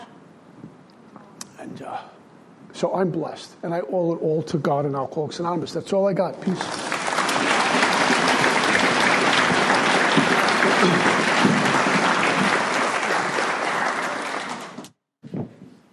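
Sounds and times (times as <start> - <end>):
speech: 1.6 - 2.2, 2.8 - 6.9
applause for a speaker at an Alcoholics Anonymous meeting: 6.4 - 14.9.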